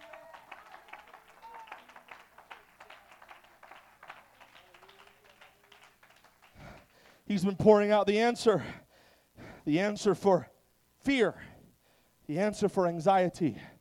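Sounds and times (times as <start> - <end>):
audience clapping hands: 0.0 - 7.1
speech: 7.3 - 8.8, 9.6 - 11.5, 12.3 - 13.7.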